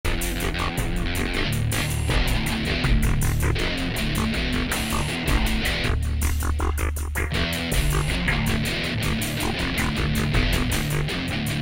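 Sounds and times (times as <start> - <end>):
metal music bit loop: 0.0 - 11.6.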